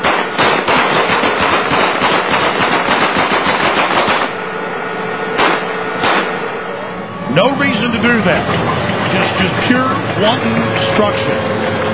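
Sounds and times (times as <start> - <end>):
automatic gunfire from soldiers shooting at a car: 0.0 - 4.4, 5.4 - 6.4
speech: 7.4 - 11.8.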